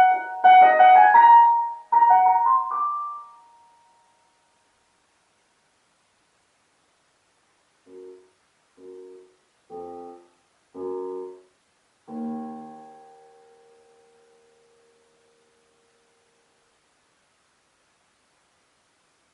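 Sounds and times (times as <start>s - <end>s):
electric piano: 0.0s - 4.2s, 7.8s - 11.5s, 12.1s - 16.4s.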